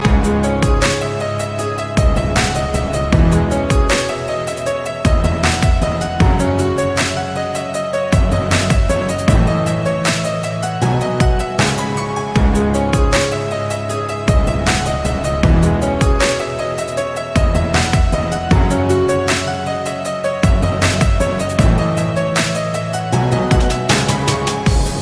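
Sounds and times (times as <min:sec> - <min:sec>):
piano dubstep: 0:00.0 - 0:25.0.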